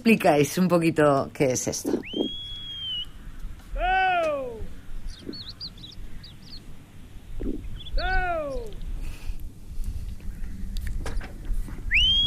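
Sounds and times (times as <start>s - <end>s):
speech: 0.0s - 2.2s
small birds chirping: 1.5s - 12.2s
shepherd calling his dog: 1.8s - 6.4s, 7.8s - 8.8s
shepherd whistling to call his dog: 1.9s - 3.2s, 11.9s - 12.2s.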